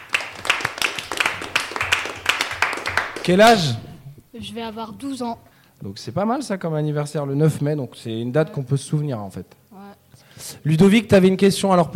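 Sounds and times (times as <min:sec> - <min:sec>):
audience applauding: 0:00.0 - 0:03.4
speech: 0:03.2 - 0:09.6, 0:10.4 - 0:11.9.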